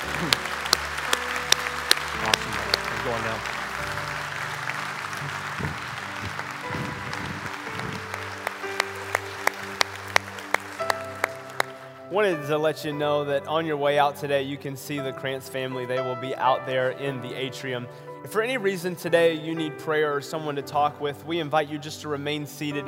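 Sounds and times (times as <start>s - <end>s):
audience round of applause: 0.0s - 12.1s
speech: 3.1s - 3.6s, 12.2s - 22.8s.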